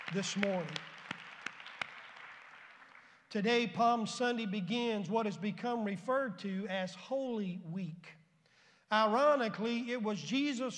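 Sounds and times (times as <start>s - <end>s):
audience clapping hands in praise: 0.0s - 3.2s
speech: 0.1s - 0.9s, 3.3s - 8.2s, 8.9s - 10.7s.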